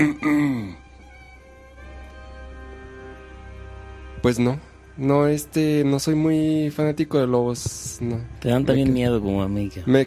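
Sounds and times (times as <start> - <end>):
coughing: 0.0 - 0.8
speech: 0.0 - 0.8, 4.2 - 10.0.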